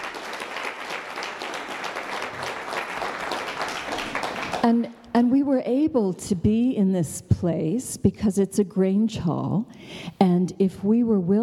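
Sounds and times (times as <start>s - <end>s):
audience applause: 0.0s - 4.7s
speech: 4.6s - 11.4s.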